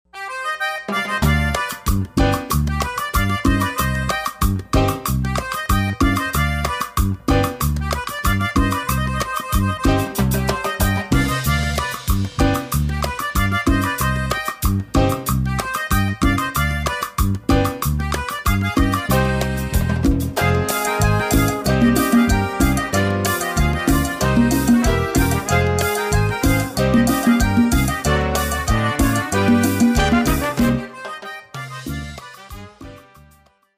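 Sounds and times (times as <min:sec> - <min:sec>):
cumbia music: 0:00.1 - 0:33.7.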